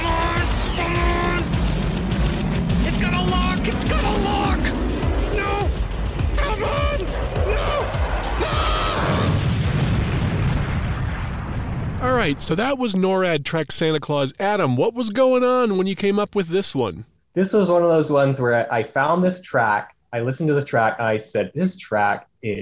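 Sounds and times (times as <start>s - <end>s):
rocket fire and explosions sound effect: 0.0s - 14.6s
speech: 12.2s - 22.6s.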